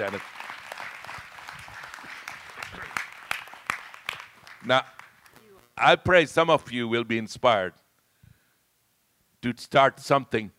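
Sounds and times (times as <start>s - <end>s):
speech: 0.0s - 0.4s, 4.6s - 5.0s, 5.8s - 7.8s, 9.4s - 10.5s
audience applause: 0.0s - 5.4s.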